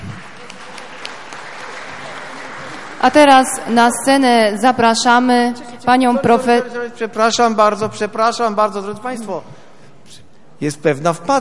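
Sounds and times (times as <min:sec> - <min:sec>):
audience applause: 0:00.0 - 0:03.7
speech: 0:03.0 - 0:09.6, 0:10.6 - 0:11.3.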